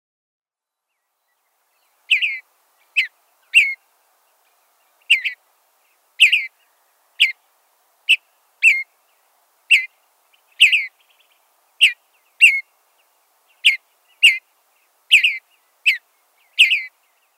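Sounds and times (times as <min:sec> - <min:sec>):
bluebird chattering: 0:02.1 - 0:03.8, 0:05.0 - 0:05.4, 0:06.2 - 0:06.6, 0:08.1 - 0:08.9, 0:09.7 - 0:12.6, 0:13.5 - 0:14.4, 0:15.1 - 0:17.0.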